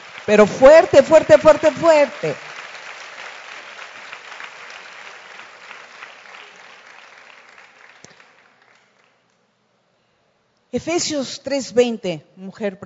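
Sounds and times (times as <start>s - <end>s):
audience applauding: 0.0s - 9.3s
speech: 0.3s - 2.4s, 10.7s - 12.8s.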